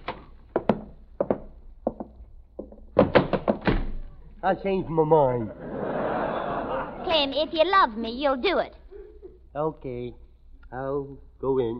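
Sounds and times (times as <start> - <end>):
door being opened: 3.0 - 4.1
speech: 4.4 - 5.7, 7.1 - 8.8, 9.5 - 11.7
laughter: 5.2 - 7.5.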